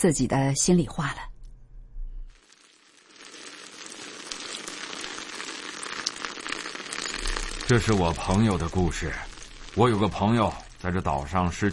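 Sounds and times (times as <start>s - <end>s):
speech: 0.0s - 1.3s, 7.7s - 11.7s
rain falling: 2.3s - 11.7s.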